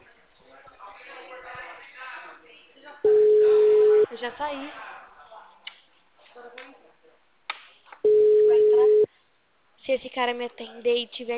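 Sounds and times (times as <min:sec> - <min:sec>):
telephone busy signal: 0:03.1 - 0:04.1, 0:08.1 - 0:09.1
speech: 0:04.2 - 0:04.9, 0:09.9 - 0:11.3.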